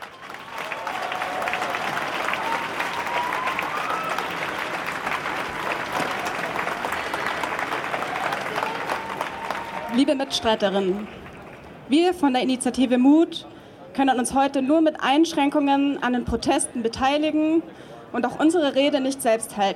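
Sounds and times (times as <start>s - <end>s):
crowd applause: 0.0s - 11.9s
speech: 10.0s - 11.2s, 11.9s - 19.7s.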